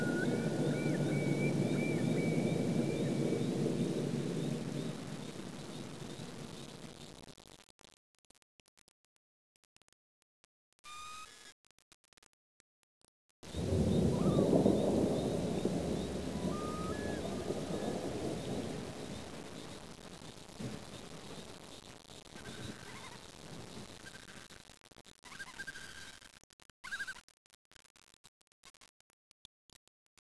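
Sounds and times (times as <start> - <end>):
thunder: 0.0 - 7.0, 13.5 - 21.7.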